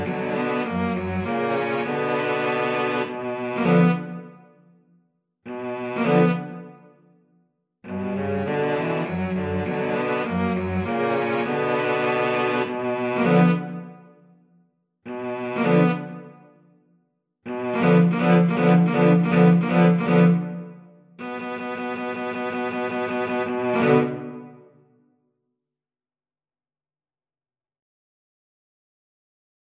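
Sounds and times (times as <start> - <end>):
cello trio playing: 0.0 - 4.3, 5.5 - 6.7, 7.9 - 13.9, 15.1 - 16.3, 17.5 - 24.5.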